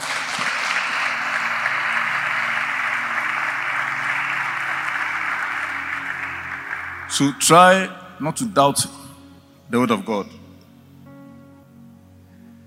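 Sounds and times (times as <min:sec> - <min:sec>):
audience clapping: 0:00.0 - 0:07.8
speech: 0:07.2 - 0:09.0, 0:09.7 - 0:10.4.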